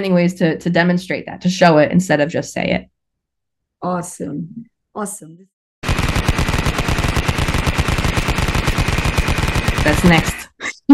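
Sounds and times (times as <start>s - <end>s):
speech: 0.0s - 3.0s, 3.8s - 5.5s, 9.8s - 10.9s
rapid gunfire sound effect: 5.8s - 10.5s.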